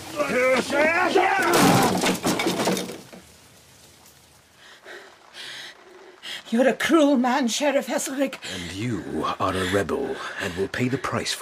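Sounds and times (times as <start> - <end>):
speech: 0.2 - 1.8, 6.5 - 11.4
door being broken down: 0.4 - 3.1.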